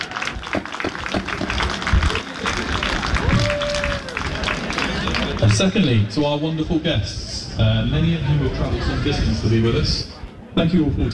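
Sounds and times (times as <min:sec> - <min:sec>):
audience round of applause: 0:00.0 - 0:05.6
speech: 0:05.6 - 0:11.1.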